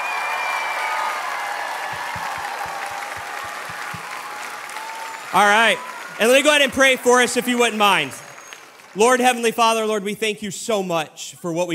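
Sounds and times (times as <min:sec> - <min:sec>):
audience applauding for students: 0:00.0 - 0:09.9
speech: 0:05.3 - 0:08.2, 0:09.0 - 0:11.7.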